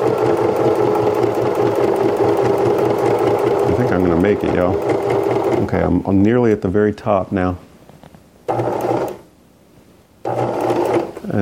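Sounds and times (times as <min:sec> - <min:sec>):
sewing machine stitching a seam on a cloth shopping bag: 0:00.0 - 0:06.0, 0:08.5 - 0:09.2, 0:10.2 - 0:11.3
speech: 0:04.3 - 0:07.7.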